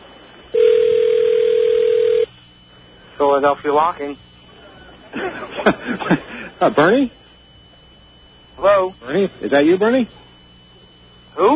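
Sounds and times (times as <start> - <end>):
telephone ringing: 0.5 - 2.3
speech: 3.3 - 4.3, 5.2 - 7.2, 8.6 - 10.2, 11.4 - 11.5
laughter: 4.6 - 6.7.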